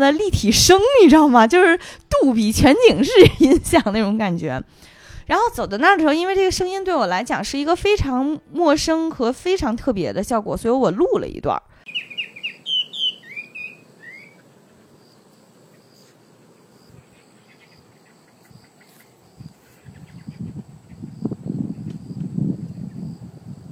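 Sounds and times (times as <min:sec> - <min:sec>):
low gusty wind: 0:00.0 - 0:06.7, 0:17.8 - 0:23.7
speech: 0:00.0 - 0:12.0
bird chirps and trills: 0:11.9 - 0:16.2, 0:16.8 - 0:22.1
thin insect drone: 0:12.0 - 0:23.7.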